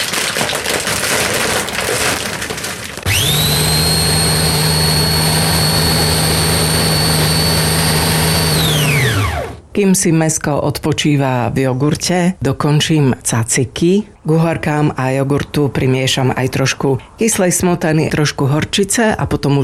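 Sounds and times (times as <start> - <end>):
blender crushing salty crackers: 0.0 - 9.7
speech: 9.8 - 19.6.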